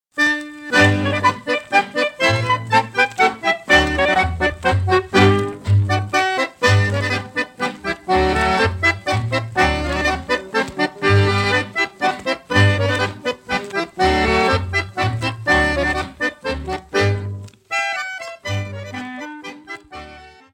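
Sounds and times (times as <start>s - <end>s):
Tyroler Plattler folk dance tune from Austria: 0.1s - 20.5s.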